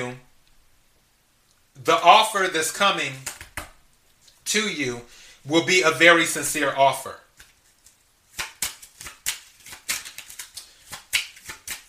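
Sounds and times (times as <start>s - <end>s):
speech: 0.0s - 0.3s, 1.8s - 3.3s, 4.5s - 7.2s
tarot cards snapping and flicking while being handled and drawn: 3.2s - 3.8s, 7.4s - 11.8s.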